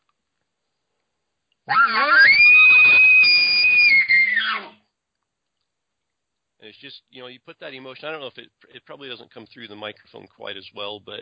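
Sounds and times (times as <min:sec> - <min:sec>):
imitated elk challenge bugle: 0:01.7 - 0:04.8
speech: 0:06.7 - 0:11.1.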